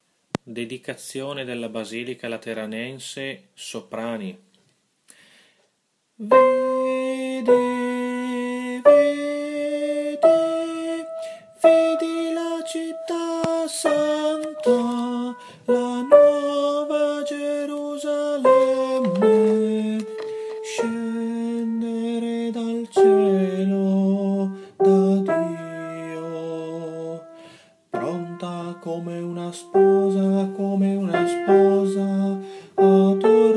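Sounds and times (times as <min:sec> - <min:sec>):
sopranos singing: 0:06.4 - 0:27.4, 0:28.0 - 0:33.5.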